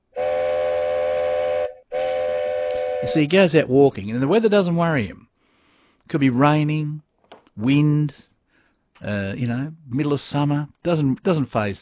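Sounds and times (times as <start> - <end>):
train's triple-toot whistle: 0.1 - 3.3
speech: 3.0 - 5.2, 6.1 - 7.0, 7.6 - 8.3, 9.0 - 11.8.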